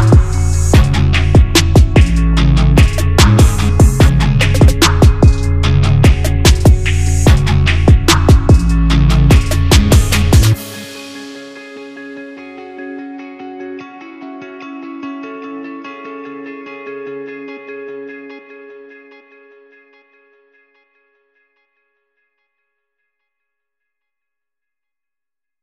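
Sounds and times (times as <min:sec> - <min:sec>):
Farsi rap remix: 0:00.0 - 0:11.3.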